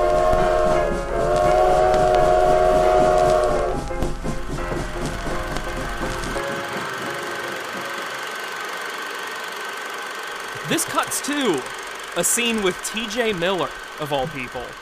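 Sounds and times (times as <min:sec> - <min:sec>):
train horn: 0:00.0 - 0:03.9
passing train wheels rumbling: 0:00.0 - 0:14.7
speech: 0:11.4 - 0:14.7.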